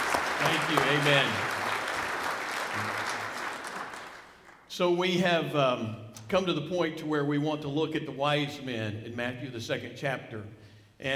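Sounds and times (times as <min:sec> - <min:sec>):
congregation applauding during a church service: 0:00.0 - 0:04.7
speech: 0:00.5 - 0:01.6, 0:02.8 - 0:03.2, 0:04.8 - 0:11.1.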